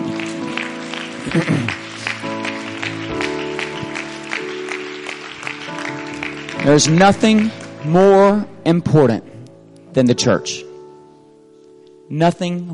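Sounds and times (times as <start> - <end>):
audience clapping hands: 0.0 - 8.4
speech: 1.3 - 1.8, 6.6 - 9.3, 10.0 - 10.7, 12.1 - 12.7.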